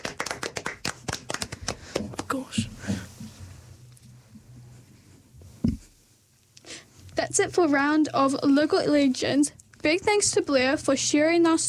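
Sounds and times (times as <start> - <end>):
hands clapping: 0.0 - 2.5
speech: 7.3 - 11.6.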